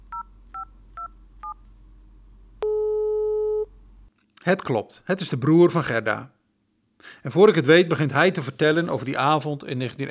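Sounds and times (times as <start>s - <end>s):
low hum: 0.0s - 5.5s
dual-tone telephone dialing beeps: 2.6s - 3.6s
telephone ringing tone: 2.6s - 3.7s
speech: 4.4s - 6.4s, 7.0s - 10.0s.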